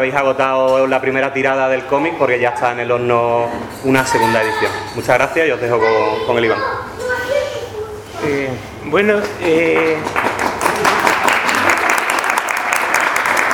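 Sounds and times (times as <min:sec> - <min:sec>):
speech: 0:00.0 - 0:06.8, 0:08.2 - 0:10.2
audience applause: 0:09.5 - 0:13.5.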